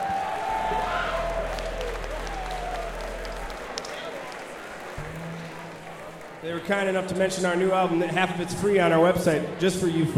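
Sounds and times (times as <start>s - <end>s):
low hum: 0.0s - 6.0s
audience applause: 0.0s - 7.2s
speech: 6.5s - 10.1s.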